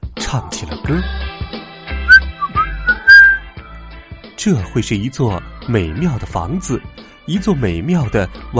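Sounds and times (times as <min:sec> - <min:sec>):
speech: 0:00.3 - 0:01.2, 0:04.4 - 0:08.5
whistling a tune: 0:02.1 - 0:03.5.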